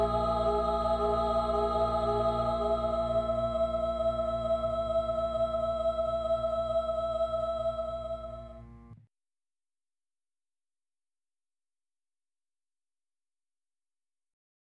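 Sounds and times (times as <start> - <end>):
cellos playing: 0.0 - 9.0.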